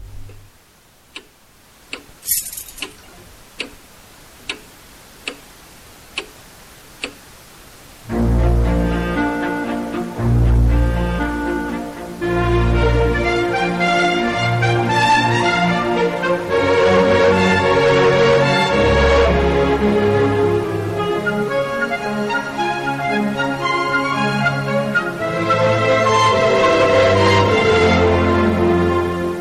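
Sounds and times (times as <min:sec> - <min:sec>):
orchestral music excerpt: 0:08.1 - 0:29.3.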